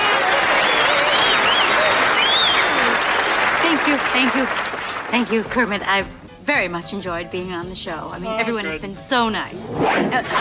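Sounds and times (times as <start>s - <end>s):
faint cheers and whoops: 0.0s - 3.2s
audience applause: 0.0s - 5.3s
speech: 3.9s - 10.4s.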